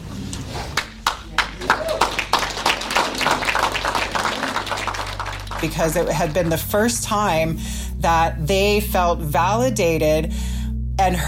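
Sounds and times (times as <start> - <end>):
crowd applause and standing ovation: 0.8 - 6.6
speech: 5.6 - 11.2.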